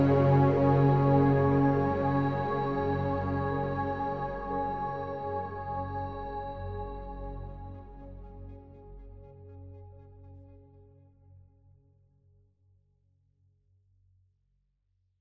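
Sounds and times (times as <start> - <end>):
emo music: 0.0 - 9.5.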